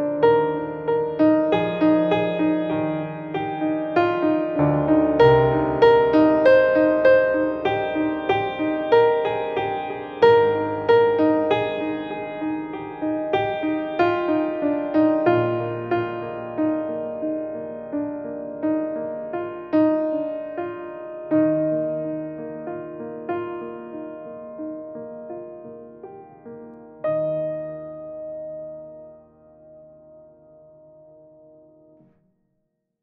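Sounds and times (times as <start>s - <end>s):
emotive piano: 0.0s - 32.2s.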